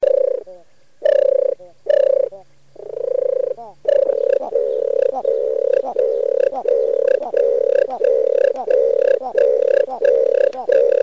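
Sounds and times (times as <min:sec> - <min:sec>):
European turtle dove giving soft throaty purrs: 0:00.0 - 0:11.0.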